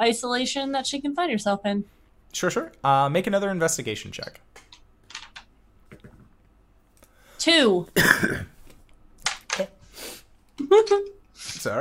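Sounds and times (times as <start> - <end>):
speech: 0.0 - 4.6, 7.4 - 8.5, 9.6 - 9.8, 10.6 - 11.7
person coughing: 8.0 - 8.6.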